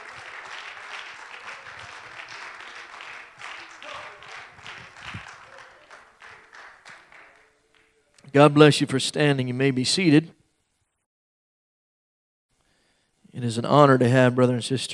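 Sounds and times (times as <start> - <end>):
audience clapping hands: 0.0 - 8.4
speech: 8.4 - 10.4, 13.5 - 14.9.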